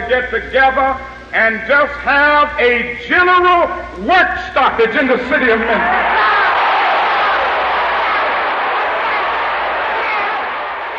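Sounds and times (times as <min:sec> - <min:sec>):
speech: 0:00.0 - 0:06.3
crowd shouting and yelling in bedlam: 0:05.6 - 0:10.9.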